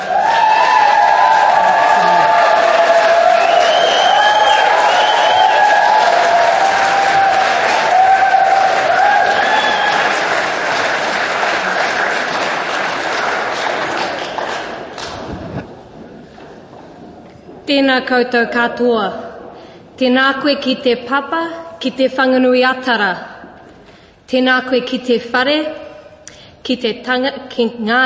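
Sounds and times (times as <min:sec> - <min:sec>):
crowd high whoops and shouts: 0:00.0 - 0:10.5
crowd applauding: 0:00.0 - 0:15.8
speech: 0:17.8 - 0:19.2, 0:20.0 - 0:23.3, 0:24.3 - 0:25.8, 0:26.6 - 0:28.0.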